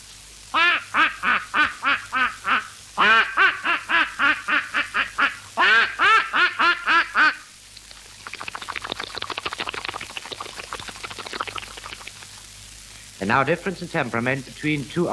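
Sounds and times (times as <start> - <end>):
voice imitating a duck quacking: 0.6 - 7.5
voice imitating a duck entering water: 0.6 - 12.4
speech: 13.3 - 15.1.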